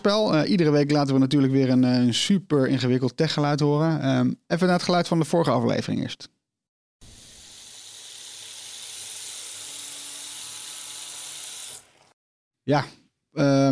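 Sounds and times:
speech: 0.0s - 6.4s, 12.7s - 13.6s
smart electric toothbrush brushing teeth: 7.1s - 12.1s.

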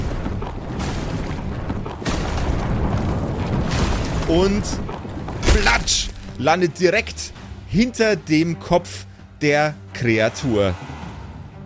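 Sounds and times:
boulder rolling down a mountain: 0.0s - 6.4s
speech: 4.3s - 4.9s, 5.6s - 10.9s.

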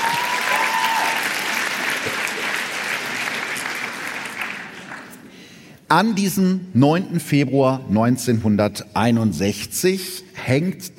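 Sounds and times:
audience applause: 0.0s - 5.2s
speech: 5.9s - 10.9s.

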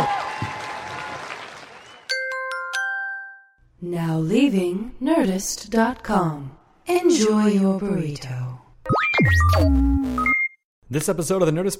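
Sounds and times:
audience applause: 0.0s - 2.1s
speech: 3.8s - 8.6s, 9.2s - 10.2s, 10.9s - 11.7s.

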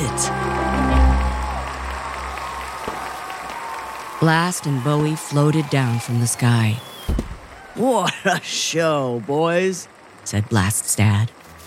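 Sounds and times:
wild applause: 0.0s - 6.8s
speech: 4.2s - 6.9s, 7.8s - 11.4s.

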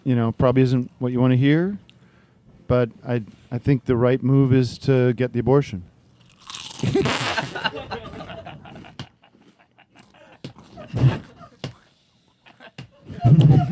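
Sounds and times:
speech: 0.0s - 1.9s, 2.7s - 5.9s
someone crunching potato chips: 6.2s - 7.4s
laughter: 6.8s - 11.7s, 12.4s - 13.7s.

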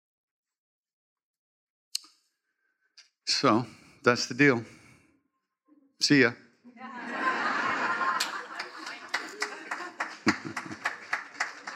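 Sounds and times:
speech: 3.3s - 4.8s, 6.0s - 7.0s
laughter: 6.7s - 11.7s
hand clap: 8.0s - 11.7s.

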